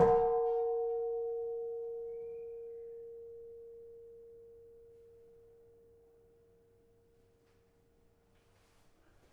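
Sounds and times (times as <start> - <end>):
kenong gong of a gamelan: 0.0 - 7.4.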